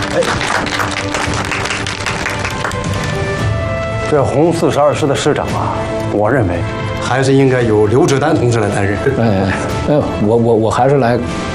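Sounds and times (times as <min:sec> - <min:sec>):
group applause: 0:00.0 - 0:03.5
speech: 0:00.2 - 0:01.8, 0:04.1 - 0:11.5.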